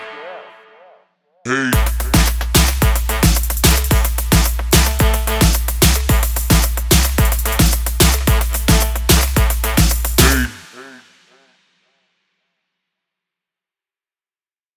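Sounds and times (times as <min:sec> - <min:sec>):
full drum kit loop: 0:01.7 - 0:11.0.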